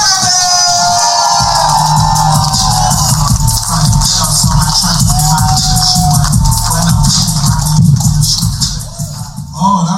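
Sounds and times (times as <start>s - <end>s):
high whoops: 0.0s - 6.7s
audience clapping and cheering: 0.0s - 9.4s
thumping low beat: 1.4s - 9.6s.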